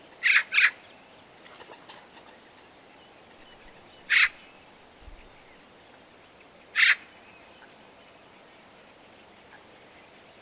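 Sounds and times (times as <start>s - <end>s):
Eurasian magpie harsh rasping calls, Pica pica: 3.5s - 4.4s.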